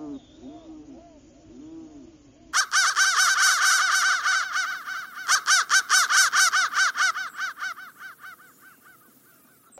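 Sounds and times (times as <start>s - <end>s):
crow giving harsh rapid caws: 2.5s - 9.7s.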